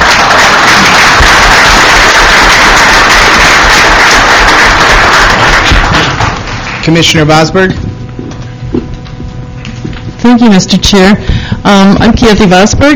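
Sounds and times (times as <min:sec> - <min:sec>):
audience applause: 0:00.0 - 0:07.0
speech: 0:06.9 - 0:07.9, 0:10.2 - 0:12.9.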